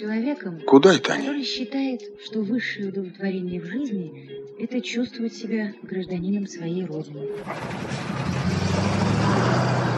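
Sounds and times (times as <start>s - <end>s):
speech: 0.0s - 9.8s
low steady engine rumble of a car pulling off: 7.4s - 9.9s.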